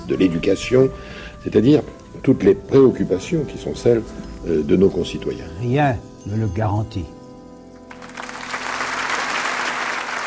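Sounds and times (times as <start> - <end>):
speech: 0.1 - 7.2
audience applause greeting a guest on a French radio philosophy programme: 7.9 - 10.2.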